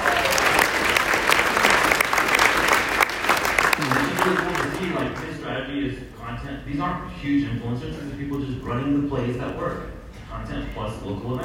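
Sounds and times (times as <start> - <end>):
crowd applauding: 0.0 - 5.4
speech: 5.9 - 11.4.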